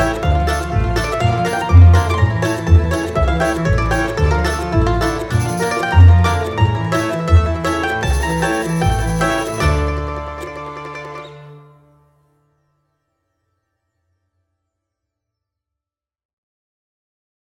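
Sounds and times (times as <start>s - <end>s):
Russian mandolin and balalaika: 0.0s - 12.3s.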